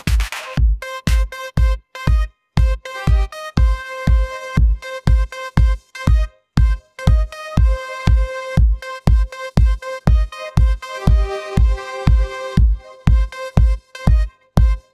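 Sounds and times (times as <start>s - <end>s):
iPhone pop remix ringtone: 0.8s - 14.8s.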